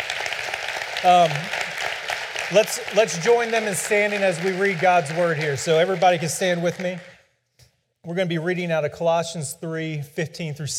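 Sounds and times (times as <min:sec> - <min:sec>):
voiced cheer: 0:00.0 - 0:07.1
crowd applause for veterans: 0:00.0 - 0:07.2
speech: 0:01.0 - 0:01.6, 0:02.5 - 0:07.1, 0:08.0 - 0:10.7.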